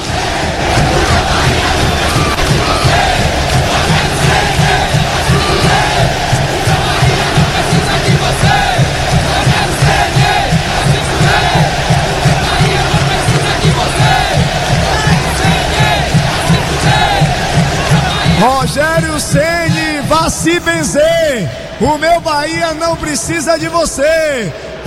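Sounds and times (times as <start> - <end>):
stadium crowd booing: 0.0 - 24.8
speech: 20.4 - 24.8.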